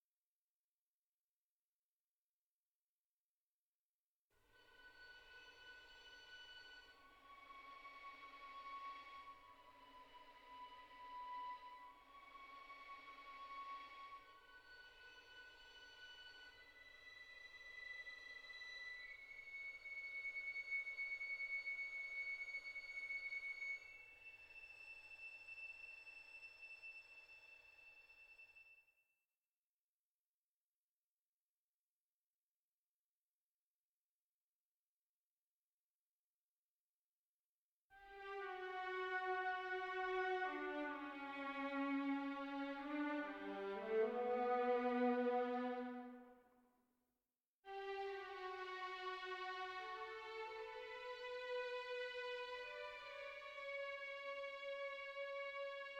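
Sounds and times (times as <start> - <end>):
menu music strings stem: 4.5 - 27.2, 38.0 - 46.4, 47.7 - 55.9.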